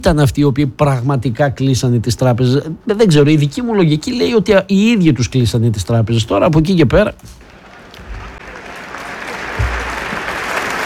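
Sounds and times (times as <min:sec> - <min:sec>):
speech: 0:00.0 - 0:07.4
crowd applause: 0:07.4 - 0:10.8
low thump: 0:09.6 - 0:10.0.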